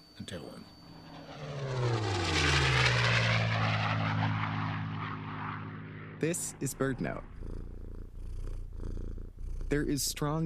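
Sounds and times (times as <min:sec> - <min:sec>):
speech: 0:00.2 - 0:01.7, 0:06.2 - 0:07.7, 0:09.7 - 0:10.4
airplane engine roar muffled by a headset: 0:00.4 - 0:08.9.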